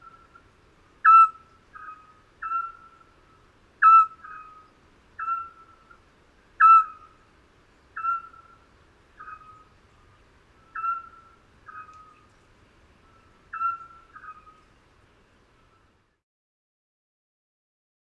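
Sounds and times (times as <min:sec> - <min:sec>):
Eurasian scops owls hooting, males: 0:01.0 - 0:03.0, 0:03.8 - 0:05.8, 0:08.0 - 0:08.6, 0:10.7 - 0:12.2, 0:13.5 - 0:14.6.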